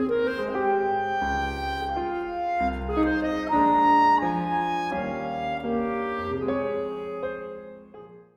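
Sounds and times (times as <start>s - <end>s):
clarinet playing a sonata: 0.0s - 8.3s
piano playing a sonata: 0.0s - 8.3s.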